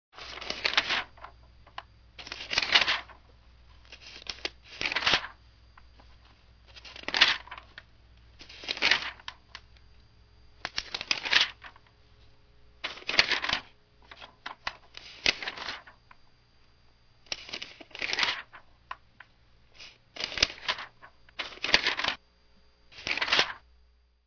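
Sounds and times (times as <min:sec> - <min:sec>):
thin pages rustling: 0:00.2 - 0:01.3, 0:02.2 - 0:03.2, 0:03.8 - 0:05.4, 0:06.0 - 0:07.8, 0:08.4 - 0:09.4, 0:10.6 - 0:11.8, 0:12.8 - 0:16.0, 0:17.3 - 0:18.6, 0:19.8 - 0:22.2, 0:23.0 - 0:23.6.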